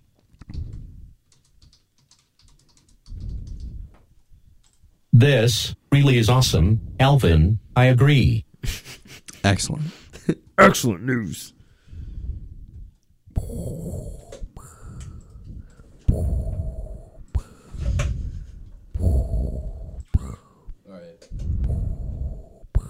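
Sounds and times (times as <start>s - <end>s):
speech: 5.2s - 11.6s
voice imitating heavy mechanical respirator breathing: 13.3s - 22.8s.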